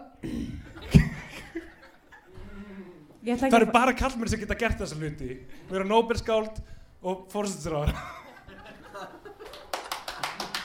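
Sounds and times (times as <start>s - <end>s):
laughter: 0.6s - 2.6s, 7.8s - 10.6s
speech: 3.2s - 8.2s
hand clapping: 9.4s - 10.6s.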